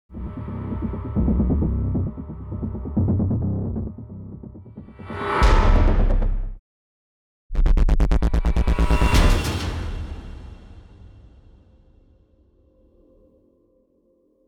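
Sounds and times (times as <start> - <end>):
music: 0.1 - 6.6, 7.5 - 14.4.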